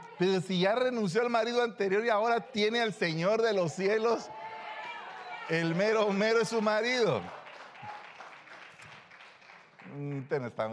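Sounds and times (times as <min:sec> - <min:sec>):
speech: 0:00.2 - 0:04.4, 0:05.5 - 0:07.4, 0:10.0 - 0:10.7
weak audience applause: 0:03.7 - 0:10.7.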